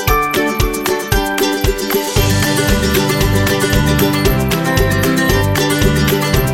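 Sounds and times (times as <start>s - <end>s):
food commercial music: 0.2s - 6.5s.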